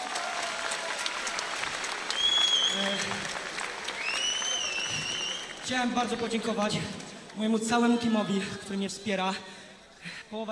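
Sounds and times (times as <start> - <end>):
scattered cheers: 0.0 - 5.7
audience applause: 0.0 - 7.4
whistle: 2.1 - 2.9, 4.0 - 5.6
speech: 2.8 - 3.4, 5.7 - 10.4.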